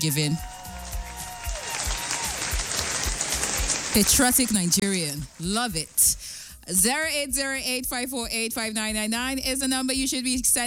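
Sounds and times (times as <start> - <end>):
speech: 0.0 - 0.6, 3.9 - 10.6
applause sound effect: 0.0 - 5.4.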